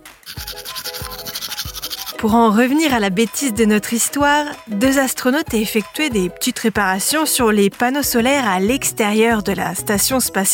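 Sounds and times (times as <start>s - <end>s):
teeth being brushed with a toothbrush: 0.2s - 2.4s
speech: 2.2s - 10.5s.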